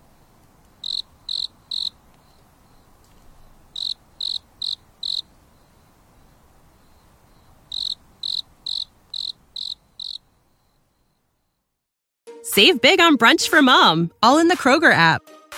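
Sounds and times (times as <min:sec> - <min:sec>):
faint hiss: 0:00.0 - 0:10.9
cricket chirping: 0:00.0 - 0:11.8
speech: 0:12.6 - 0:15.5.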